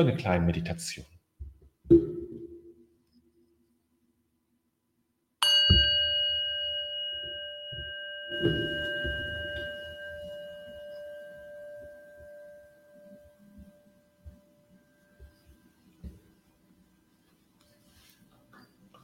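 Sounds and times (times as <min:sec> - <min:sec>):
speech: 0:00.0 - 0:01.2
singing bowl struck with a mallet: 0:05.4 - 0:16.5
faint rustling: 0:13.6 - 0:19.0.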